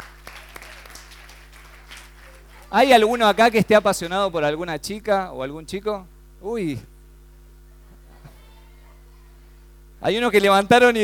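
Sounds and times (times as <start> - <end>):
faint applause from a gathered group: 0.0 - 4.2
low constant hum: 0.0 - 11.0
speech: 2.7 - 6.9, 10.0 - 11.0.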